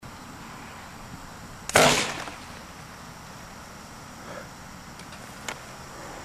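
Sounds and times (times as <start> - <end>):
boomstick test shot: 1.7 - 2.6.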